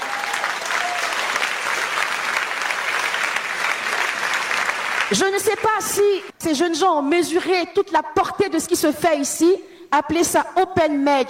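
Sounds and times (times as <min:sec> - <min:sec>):
audience applauding at a French-language church gathering: 0:00.0 - 0:05.8
speech: 0:05.1 - 0:11.2.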